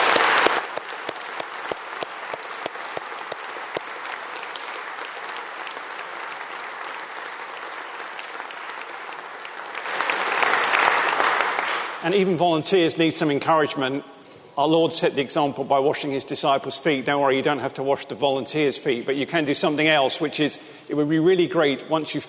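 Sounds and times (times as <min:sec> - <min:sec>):
audience applause: 0:00.0 - 0:12.0
speech: 0:12.0 - 0:22.2.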